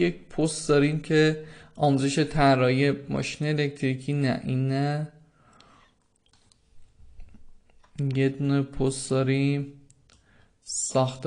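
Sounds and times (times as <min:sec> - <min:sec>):
speech: 0:00.0 - 0:05.2, 0:08.0 - 0:09.8, 0:10.7 - 0:11.2
quiet computer keyboard typing: 0:05.5 - 0:08.4.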